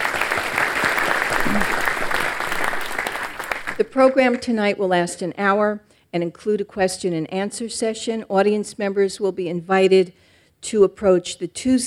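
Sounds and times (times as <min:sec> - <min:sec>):
evening audience applause for trustees and council members: 0:00.0 - 0:03.8
speech: 0:03.9 - 0:11.8.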